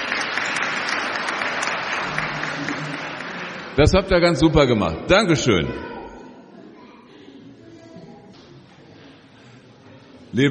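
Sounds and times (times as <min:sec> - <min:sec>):
applause: 0:00.0 - 0:04.2
speech: 0:03.8 - 0:05.9.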